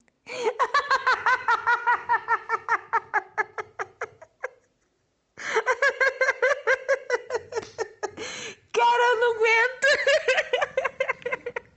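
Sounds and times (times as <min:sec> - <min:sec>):
person laughing: 0:00.3 - 0:04.8, 0:05.4 - 0:08.4, 0:09.8 - 0:11.7.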